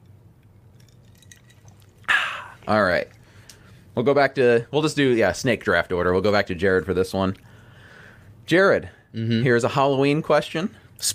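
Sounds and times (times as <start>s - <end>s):
person taking a quick sip of a drink: 1.1s - 3.8s
speech: 2.6s - 3.2s, 4.0s - 7.5s, 8.5s - 11.1s.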